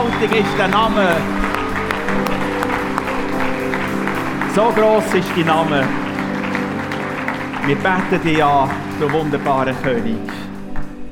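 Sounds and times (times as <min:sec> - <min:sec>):
audience applause: 0:00.0 - 0:10.8
speech: 0:00.2 - 0:01.4, 0:04.5 - 0:06.0, 0:07.6 - 0:10.4.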